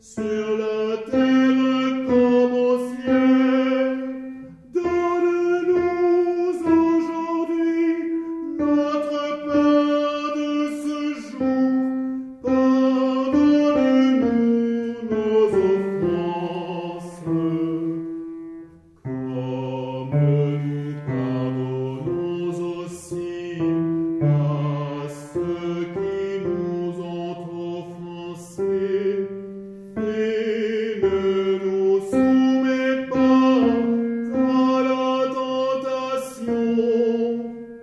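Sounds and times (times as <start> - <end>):
tenors singing a prayer: 0.0 - 37.8.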